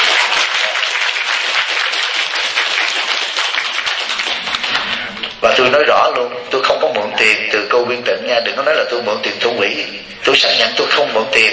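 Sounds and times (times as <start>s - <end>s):
audience clapping in support: 0.0s - 5.7s
speech: 7.2s - 11.5s.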